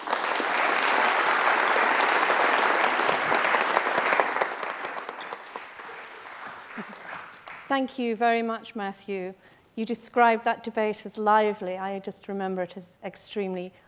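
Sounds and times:
audience applause welcoming two authors at a book talk: 0:00.0 - 0:07.7
speech: 0:07.7 - 0:13.8.

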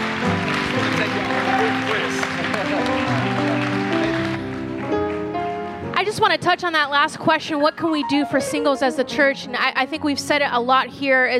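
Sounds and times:
audience round of applause: 0:00.0 - 0:05.6
speech: 0:06.2 - 0:11.3.

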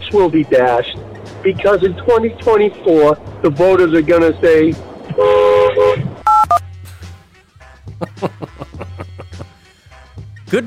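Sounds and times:
speech: 0:00.1 - 0:05.4
censor bleep tone: 0:06.3 - 0:06.6
laughter: 0:08.0 - 0:09.6.

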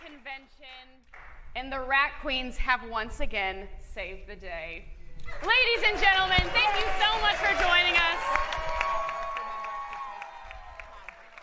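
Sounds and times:
speech: 0:00.3 - 0:08.8
audience cheering: 0:05.3 - 0:11.4
audience applause: 0:06.0 - 0:11.4.

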